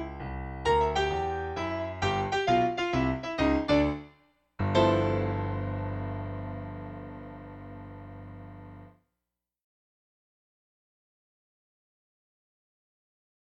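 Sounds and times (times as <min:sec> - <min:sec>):
blues piano track: 0:00.0 - 0:08.9.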